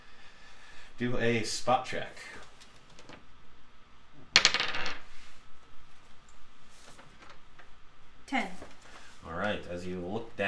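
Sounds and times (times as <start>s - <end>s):
speech: 1.0s - 2.4s, 9.4s - 10.4s
dice rolling on a table: 4.3s - 5.1s.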